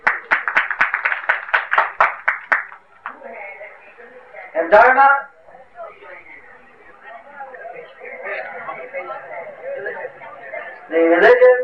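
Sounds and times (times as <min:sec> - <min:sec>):
loud audience applause: 0:00.0 - 0:03.2
crowd murmur: 0:02.6 - 0:11.6
speech: 0:04.6 - 0:05.3, 0:10.9 - 0:11.6.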